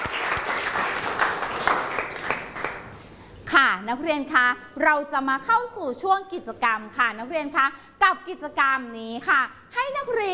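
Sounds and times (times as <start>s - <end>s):
students applauding: 0.0s - 3.0s
speech: 3.9s - 10.3s.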